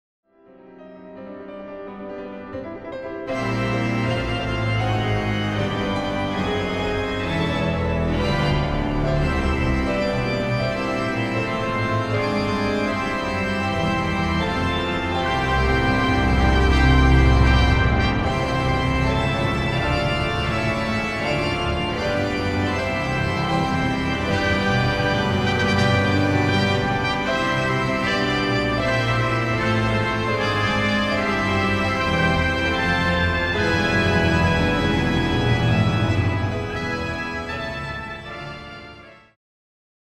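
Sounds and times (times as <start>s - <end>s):
organ theme: 2.9s - 39.4s.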